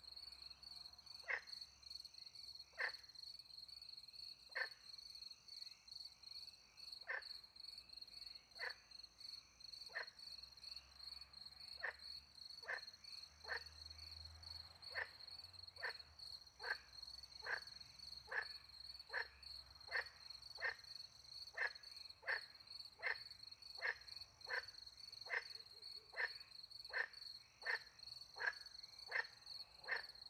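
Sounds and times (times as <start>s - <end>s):
cricket chorus: 0.0s - 30.2s
frog croaks: 1.1s - 1.8s, 2.6s - 3.2s, 4.5s - 4.9s, 6.7s - 7.4s, 8.4s - 10.8s, 11.7s - 30.2s.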